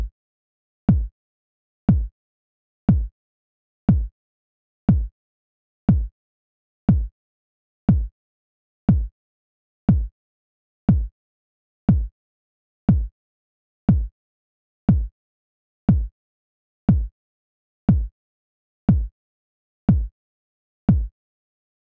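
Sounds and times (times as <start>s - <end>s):
kick drum: 0.9s - 1.1s, 1.9s - 2.1s, 2.9s - 3.1s, 3.9s - 4.1s, 4.9s - 5.1s, 5.9s - 6.1s, 6.9s - 7.1s, 7.9s - 8.1s, 8.9s - 9.1s, 9.9s - 10.1s, 10.9s - 11.1s, 11.9s - 12.1s, 12.9s - 13.1s, 13.9s - 14.1s, 14.9s - 15.1s, 15.9s - 16.1s, 16.9s - 17.1s, 17.9s - 18.1s, 18.9s - 19.1s, 19.9s - 20.1s, 20.9s - 21.1s.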